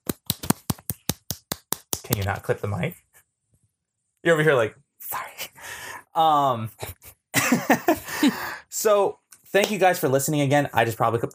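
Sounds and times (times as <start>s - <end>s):
hand clapping: 0.0s - 2.5s
speech: 2.1s - 3.0s, 4.2s - 5.2s, 6.2s - 6.9s, 7.5s - 11.3s
laughter: 6.8s - 8.5s.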